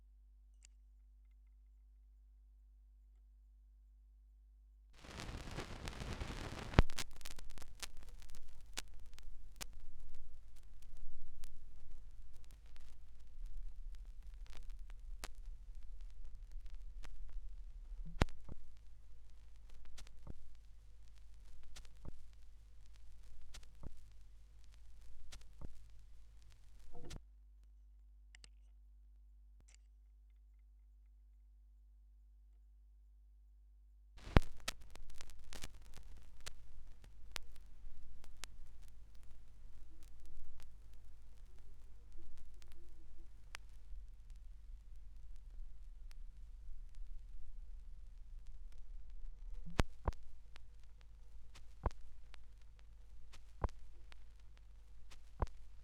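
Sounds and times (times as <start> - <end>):
vinyl record noise: 5.0 - 27.2, 34.2 - 55.8.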